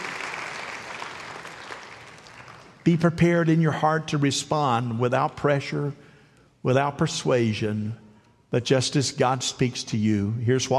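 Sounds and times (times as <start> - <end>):
crowd applauding: 0.0 - 2.8
speech: 2.8 - 6.0, 6.6 - 10.7.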